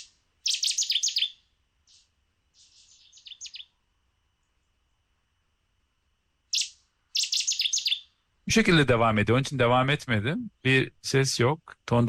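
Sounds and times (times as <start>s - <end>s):
village bird song phrase: 0.0s - 3.8s, 6.5s - 8.2s
speech: 8.5s - 12.0s.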